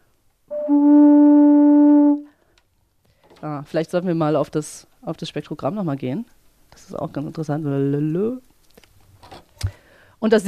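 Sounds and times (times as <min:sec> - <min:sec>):
pipes built to standard dimensions sounding: 0:00.5 - 0:02.3
speech: 0:03.6 - 0:08.5, 0:10.2 - 0:10.4.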